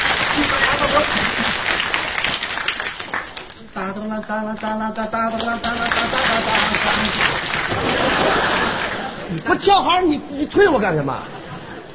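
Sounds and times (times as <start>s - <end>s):
audience applause: 0.0s - 3.6s, 5.3s - 9.2s
laughter: 0.3s - 1.9s, 6.0s - 9.7s, 10.8s - 11.9s
speech: 4.2s - 8.6s, 9.3s - 11.4s.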